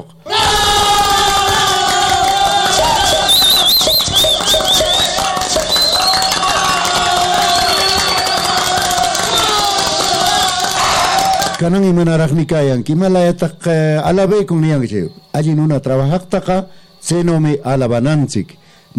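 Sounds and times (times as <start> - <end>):
audience applause and cheering: 0.3 - 11.7
speech: 11.6 - 18.9.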